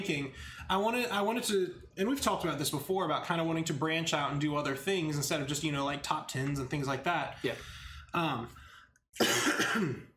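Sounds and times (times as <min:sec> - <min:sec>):
speech: 0:00.0 - 0:08.6, 0:09.2 - 0:10.1
person still getting over an illness coughing: 0:09.2 - 0:10.1.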